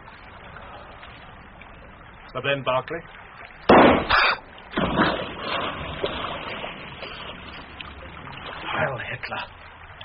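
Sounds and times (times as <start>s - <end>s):
speech: 2.3s - 3.2s, 9.3s - 9.6s
gunshot: 3.7s - 5.2s.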